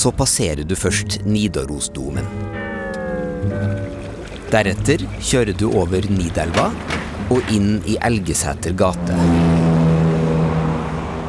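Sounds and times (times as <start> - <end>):
speech: 0.0 - 2.6, 3.4 - 9.6
car traffic on a busy road in Trondheim: 2.5 - 11.2.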